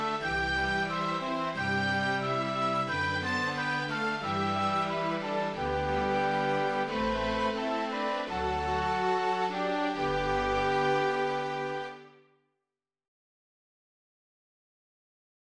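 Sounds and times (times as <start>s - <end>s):
chamber cantiga music: 0.0s - 12.2s.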